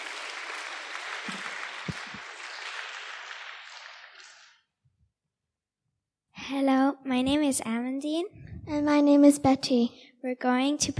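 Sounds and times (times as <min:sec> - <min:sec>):
audience applause: 0:00.0 - 0:04.6
speech: 0:07.2 - 0:10.9.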